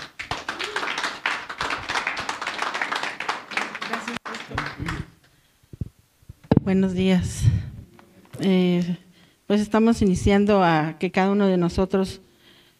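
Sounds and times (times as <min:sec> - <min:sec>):
audience applause: 0:00.0 - 0:05.2
speech: 0:06.7 - 0:07.5, 0:08.4 - 0:12.2.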